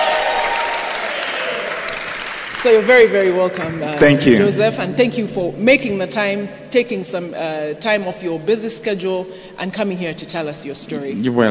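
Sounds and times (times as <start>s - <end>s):
audience applause: 0.0s - 4.5s
speech: 2.6s - 11.4s.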